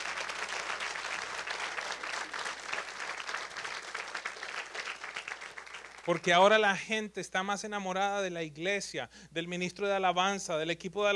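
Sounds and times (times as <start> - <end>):
audience applause: 0.0 - 6.3
speech: 6.1 - 11.1.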